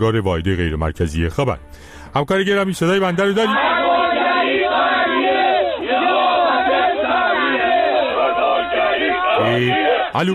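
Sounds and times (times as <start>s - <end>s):
speech: 0.0s - 3.7s, 9.6s - 10.3s
large crowd of demonstrators shouting and chanting: 3.2s - 10.3s.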